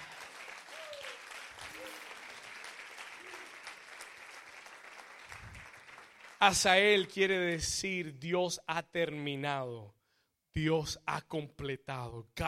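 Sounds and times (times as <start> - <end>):
audience applause: 0.0 - 6.7
speech: 6.4 - 10.0, 10.6 - 12.4.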